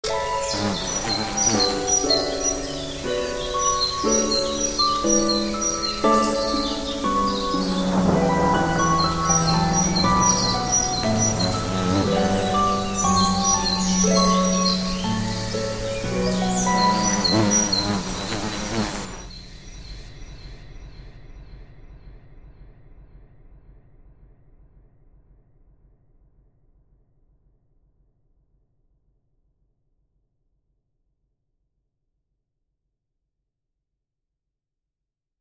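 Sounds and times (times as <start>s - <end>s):
nature sounds: 0.0s - 22.2s.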